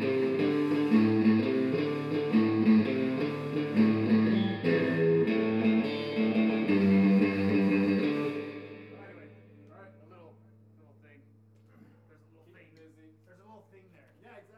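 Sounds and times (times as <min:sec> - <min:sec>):
bassline: 0:00.0 - 0:09.7.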